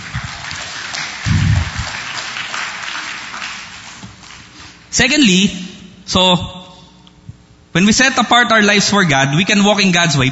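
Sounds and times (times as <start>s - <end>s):
church congregation clapping: 0.0s - 4.8s
speech: 5.0s - 6.6s, 7.7s - 10.3s.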